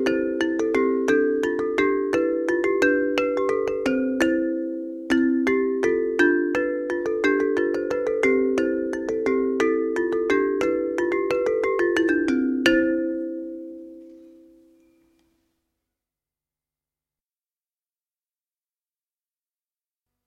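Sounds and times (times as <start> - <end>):
small bells playing a mazurka in Bergamo: 0.0 - 15.2.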